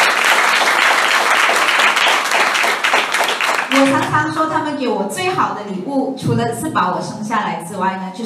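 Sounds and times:
audience applause: 0.0 - 4.1
speech: 3.8 - 8.2.

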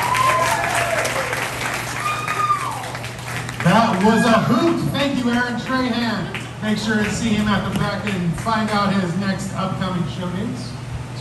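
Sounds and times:
faint whoops or cheers: 0.0 - 3.2, 3.9 - 4.6
audience applause: 0.0 - 8.8
speech: 4.0 - 10.8.

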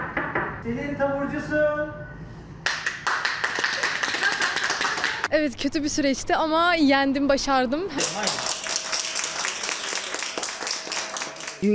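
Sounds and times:
speech: 0.6 - 2.2, 5.3 - 8.5, 11.6 - 11.7
healthcare workers applauding: 2.6 - 5.3, 8.0 - 11.7.

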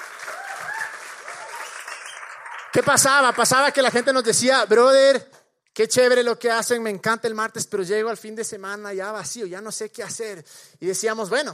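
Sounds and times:
audience applause: 0.0 - 4.2
speech: 2.8 - 11.5.

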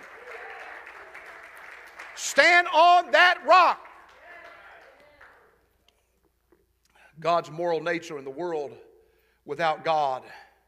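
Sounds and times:
audience clapping hands: 0.0 - 5.7
speech: 2.2 - 3.8, 7.2 - 8.9, 9.5 - 10.4.

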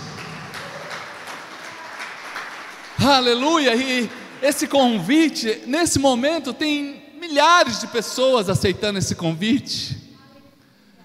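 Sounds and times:
audience clapping rhythmically: 0.0 - 5.3
speech: 3.1 - 10.0.

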